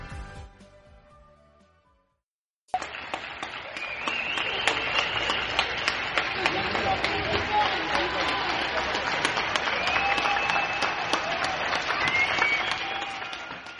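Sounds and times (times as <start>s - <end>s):
applause from balconies and windows: 2.8s - 13.7s
faint cheers: 3.5s - 13.7s
whistles: 3.6s - 5.8s, 9.6s - 13.7s.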